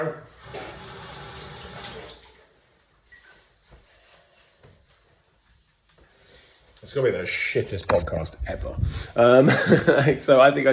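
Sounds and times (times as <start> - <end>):
speech: 0.0 - 0.3, 6.8 - 10.7
washing hands under running tap water: 0.4 - 2.4
laughter: 9.3 - 10.2.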